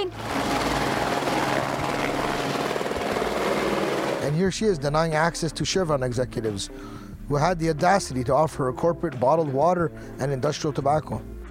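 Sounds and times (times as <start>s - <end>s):
helicopter rotor thumping: 0.0s - 4.4s
speech: 4.4s - 11.3s.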